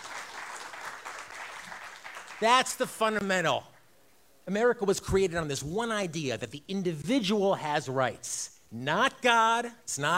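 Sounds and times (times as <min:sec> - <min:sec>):
crowd clapping: 0:00.0 - 0:02.9
speech: 0:02.4 - 0:03.7, 0:04.5 - 0:10.1.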